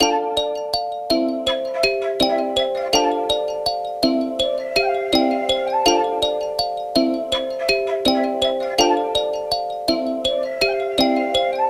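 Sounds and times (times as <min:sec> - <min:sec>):
164 BPM A minor hip hop melody: 0:00.0 - 0:11.6.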